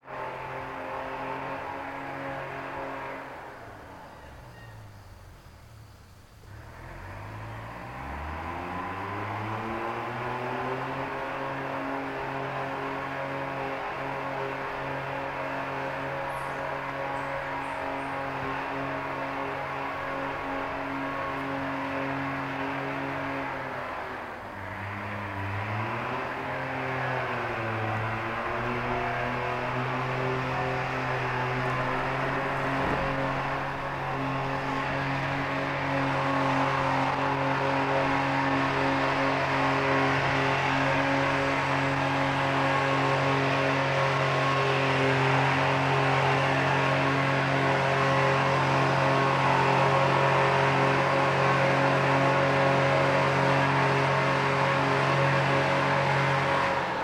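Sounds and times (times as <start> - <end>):
industrial logging skidder pulling logs out of forest: 0.0 - 57.0.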